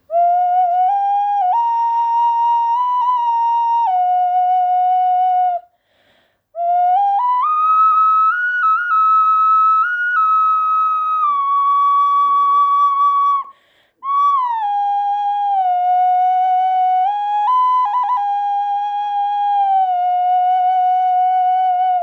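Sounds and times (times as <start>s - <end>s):
large ocarina playing: 0.1s - 5.6s, 6.6s - 22.0s.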